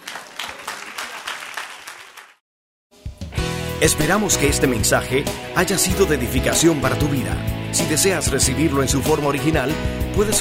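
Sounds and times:
audience applause: 0.0 - 2.4
speech: 3.8 - 10.3.

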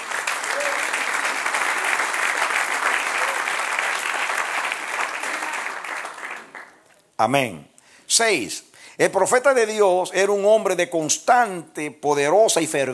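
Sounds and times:
audience applause: 0.0 - 7.0
speech: 7.2 - 12.9.

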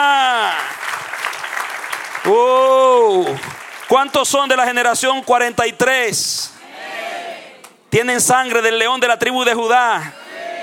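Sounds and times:
audience clapping and cheering: 0.1 - 4.7
speech: 4.0 - 6.6, 7.9 - 10.2.

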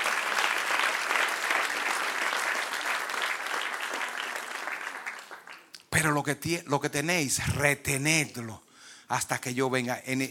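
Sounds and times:
audience applause: 0.0 - 5.7
speech: 6.0 - 10.2.

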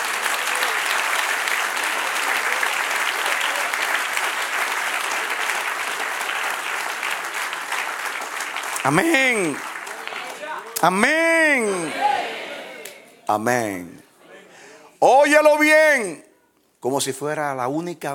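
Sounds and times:
audience applause: 0.0 - 13.0
speech: 8.9 - 9.7, 10.8 - 12.1, 13.3 - 14.0, 15.0 - 16.2, 16.8 - 18.1.

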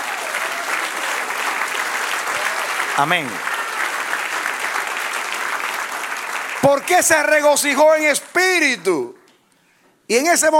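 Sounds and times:
audience applauding: 0.0 - 8.0
speech: 3.0 - 3.5, 6.6 - 9.2, 10.1 - 10.5.

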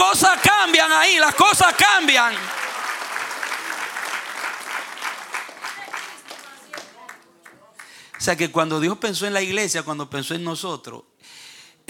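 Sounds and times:
audience applauding: 0.0 - 8.3
speech: 8.2 - 11.1.

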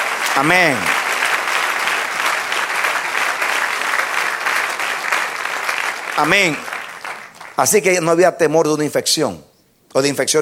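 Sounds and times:
audience applauding: 0.0 - 8.0
speech: 0.4 - 0.9, 6.2 - 6.7, 7.6 - 10.4.

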